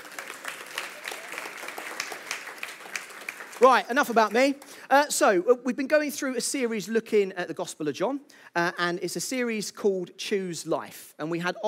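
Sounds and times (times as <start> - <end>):
audience applause: 0.0 - 4.8
speech: 3.6 - 11.6.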